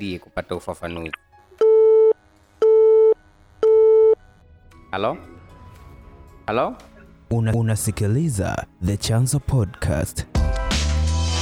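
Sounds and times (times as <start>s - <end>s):
speech: 0.0s - 1.3s, 4.9s - 5.4s, 6.5s - 10.6s
telephone busy tone after a call is hung up: 1.6s - 4.2s.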